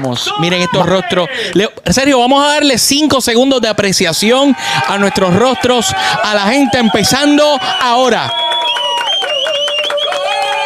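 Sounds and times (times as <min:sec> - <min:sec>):
applause: 0:00.0 - 0:00.3, 0:04.7 - 0:10.6
speech: 0:00.1 - 0:08.4
cheering: 0:04.1 - 0:10.6.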